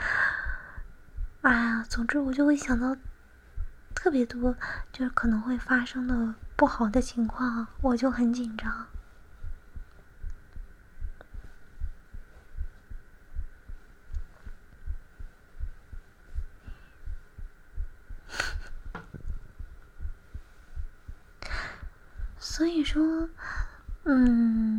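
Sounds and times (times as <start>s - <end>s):
fast heartbeat: 0.4s - 4.6s, 5.3s - 22.6s, 23.2s - 24.1s
speech: 1.4s - 3.1s, 4.0s - 9.0s, 22.9s - 24.7s.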